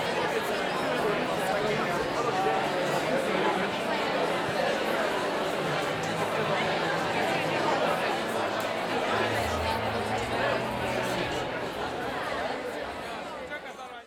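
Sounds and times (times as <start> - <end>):
crowd walla: 0.0 - 14.0
city ambience in Northern India: 8.8 - 13.1.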